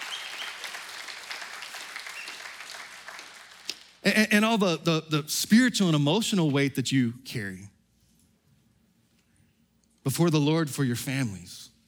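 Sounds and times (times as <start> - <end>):
audience clapping: 0.0 - 4.0
speech: 4.0 - 7.8, 10.0 - 11.7.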